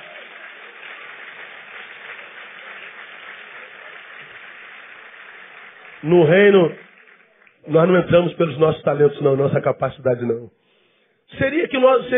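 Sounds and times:
audience applauding: 0.0s - 8.6s
speech: 6.0s - 6.8s, 7.7s - 10.6s, 11.3s - 12.1s.

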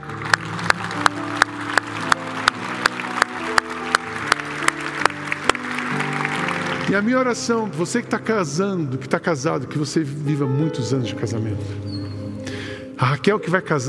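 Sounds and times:
applause from audience: 0.0s - 7.6s
speech: 6.9s - 12.0s, 13.0s - 13.8s.

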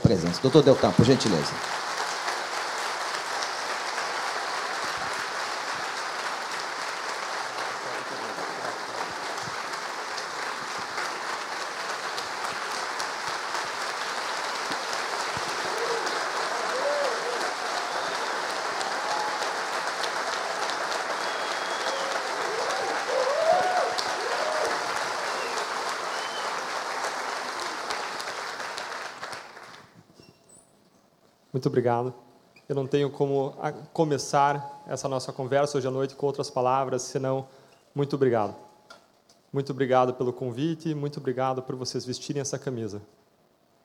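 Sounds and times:
standing ovation applause: 0.0s - 30.0s
speech: 0.1s - 1.8s, 31.6s - 38.6s, 39.5s - 43.2s.

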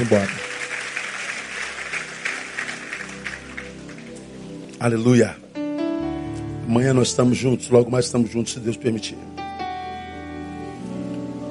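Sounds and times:
speech: 0.0s - 0.4s, 4.8s - 5.4s, 6.7s - 9.4s
audience applause: 0.0s - 4.3s.

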